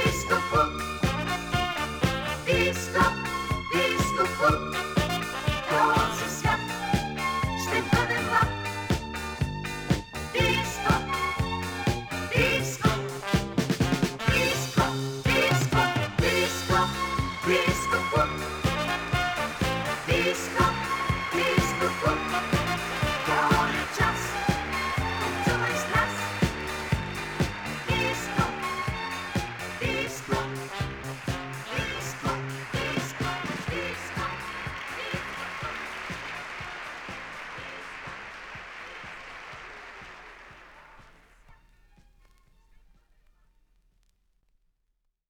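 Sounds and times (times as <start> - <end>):
male vocal trio singing disco: 0.0 - 8.7, 14.3 - 36.3
disco music: 0.0 - 42.4.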